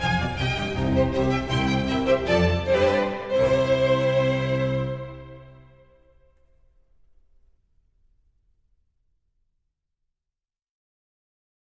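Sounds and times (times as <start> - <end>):
concerto for strings and continuo allegro in C major: 0.0 - 6.1.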